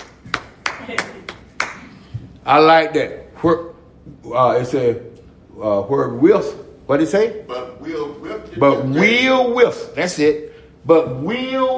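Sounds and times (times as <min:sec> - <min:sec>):
hand claps: 0:00.0 - 0:02.4
speech: 0:00.9 - 0:01.3, 0:02.4 - 0:11.7.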